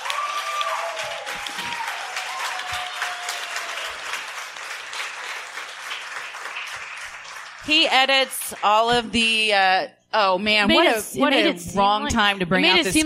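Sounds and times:
audience applause: 0:00.0 - 0:08.7
speech: 0:07.7 - 0:13.0.

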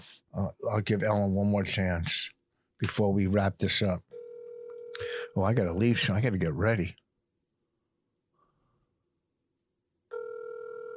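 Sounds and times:
speech: 0:00.0 - 0:04.2, 0:04.9 - 0:07.0
telephone ringback tone of an unanswered call: 0:04.2 - 0:05.0, 0:10.1 - 0:10.9.

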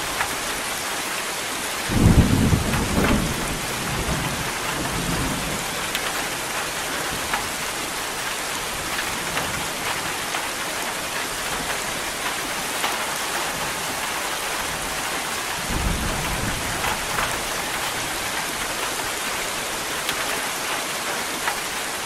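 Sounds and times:
steady dense rain: 0:00.0 - 0:22.0
thunder rumbling: 0:01.9 - 0:07.6, 0:15.6 - 0:18.2.

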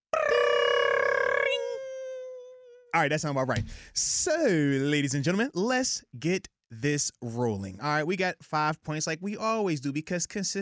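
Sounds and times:
voice imitating a school bell ringing: 0:00.2 - 0:02.4
speech: 0:03.0 - 0:10.6.

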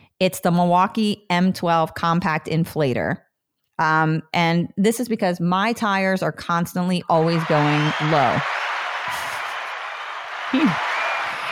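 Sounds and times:
speech: 0:00.2 - 0:03.2, 0:03.8 - 0:09.2
applause: 0:07.2 - 0:11.5.

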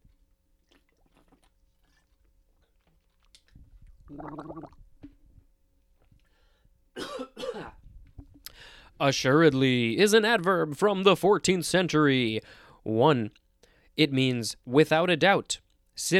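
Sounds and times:
person drinking water: 0:00.0 - 0:05.2
speech: 0:04.1 - 0:04.8, 0:09.0 - 0:13.4, 0:14.0 - 0:16.1
throat clearing: 0:07.0 - 0:07.8.

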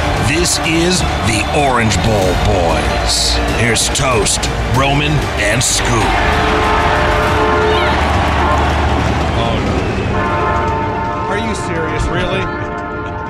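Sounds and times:
train passing by: 0:00.0 - 0:13.2
speech: 0:00.5 - 0:07.6, 0:09.4 - 0:10.3, 0:11.5 - 0:12.6
train horn blowing: 0:05.2 - 0:13.2.

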